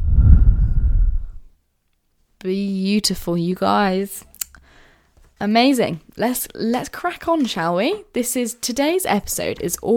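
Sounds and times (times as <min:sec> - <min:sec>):
deep exhale during a guided breathing exercise: 0:00.0 - 0:01.5
speech: 0:02.4 - 0:04.3, 0:05.4 - 0:09.9.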